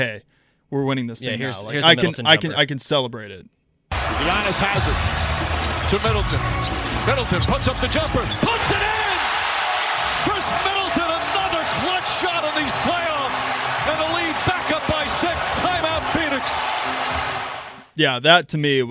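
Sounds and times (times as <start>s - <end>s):
speech: 0.0s - 8.9s, 18.0s - 18.8s
basketball arena crowd cheering: 3.9s - 17.9s.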